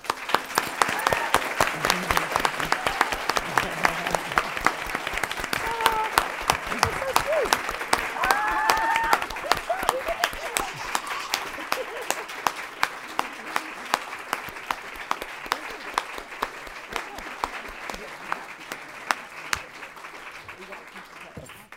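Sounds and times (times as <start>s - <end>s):
standing ovation at a civic forum on juvenile justice: 0.0s - 21.7s
laughter: 0.8s - 19.7s.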